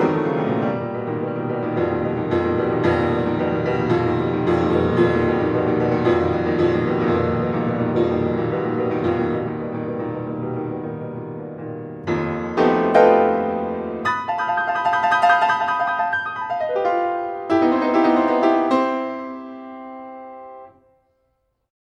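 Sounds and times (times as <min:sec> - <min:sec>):
piano piece: 0:00.0 - 0:21.2.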